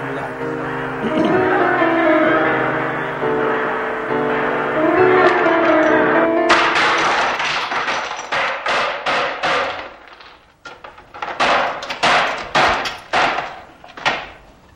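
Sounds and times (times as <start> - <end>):
laughter: 0.0 - 7.4
icon being smashed: 6.5 - 14.4.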